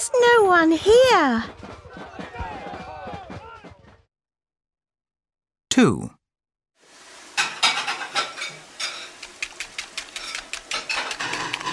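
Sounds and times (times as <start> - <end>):
speech: 0.1 - 1.7, 5.8 - 6.2
pots and dishes clattering in a kitchen while Mum cooks: 7.3 - 9.2, 10.2 - 11.7.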